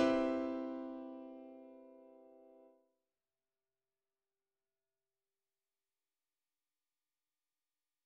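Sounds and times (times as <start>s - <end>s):
dominant seventh, major seventh and minor seventh chord progression: 0.0s - 2.6s.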